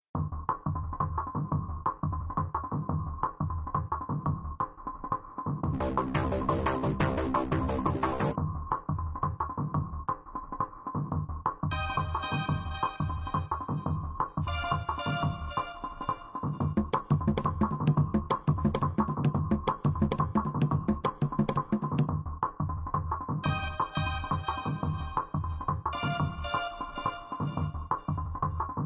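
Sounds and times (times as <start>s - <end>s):
rhythm: 0.2s - 28.8s.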